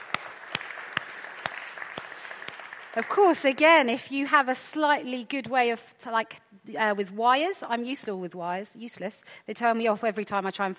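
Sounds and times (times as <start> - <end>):
audience applause: 0.0 - 3.6
speech: 3.0 - 10.7.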